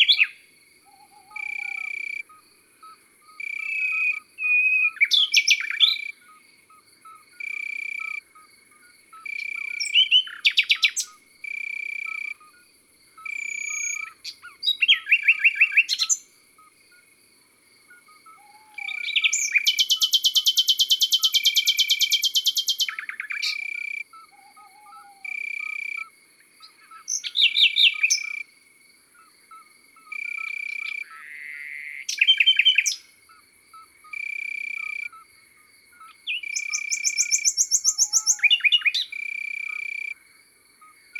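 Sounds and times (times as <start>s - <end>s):
birds singing in the countryside: 0.0s - 6.4s, 9.2s - 11.2s, 13.2s - 16.7s, 17.9s - 25.9s, 26.6s - 28.4s, 29.2s - 33.1s, 36.0s - 40.1s
common nightingale singing in the countryside: 0.0s - 17.1s, 17.9s - 28.5s, 29.2s - 35.2s, 35.9s - 40.2s, 40.8s - 41.1s.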